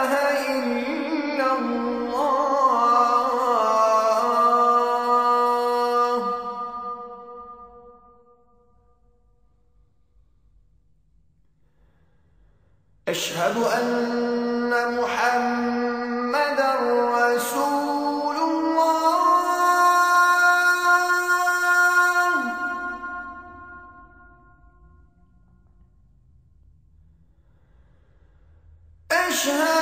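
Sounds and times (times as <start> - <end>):
azan call to prayer: 0.0 - 8.0, 13.0 - 24.5, 29.1 - 29.7.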